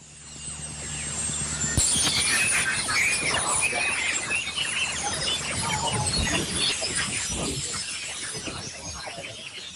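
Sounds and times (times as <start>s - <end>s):
recorded aurora whistling: 0.3s - 9.7s
recorded aurora crackling: 1.6s - 9.2s.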